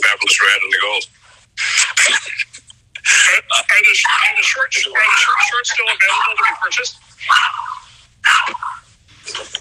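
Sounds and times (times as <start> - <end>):
speech: 0.3 - 1.2, 3.3 - 7.7
small dog yapping: 7.3 - 8.8.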